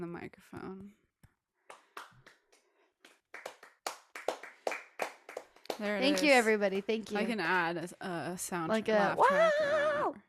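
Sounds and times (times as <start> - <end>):
speech: 0.0 - 1.0, 5.8 - 10.2
slow half-hearted golf clap: 1.7 - 6.0.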